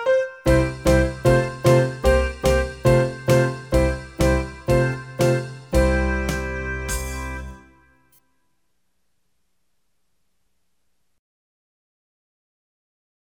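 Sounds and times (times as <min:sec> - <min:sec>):
blues rock music: 0:00.5 - 0:07.8.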